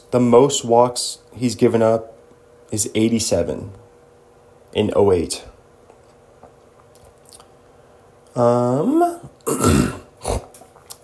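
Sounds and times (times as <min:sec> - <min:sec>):
speech: 0:00.1 - 0:03.8, 0:04.7 - 0:05.5, 0:08.4 - 0:09.9
person snorting: 0:08.5 - 0:10.6.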